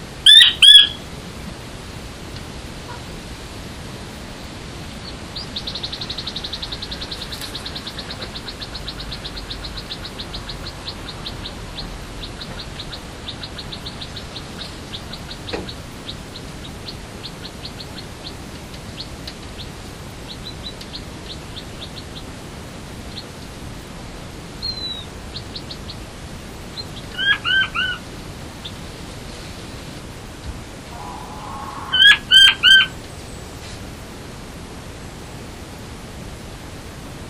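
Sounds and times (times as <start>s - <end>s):
Chinese quail calling: 0.2s - 1.0s, 5.4s - 18.4s, 26.8s - 28.1s, 30.8s - 33.0s.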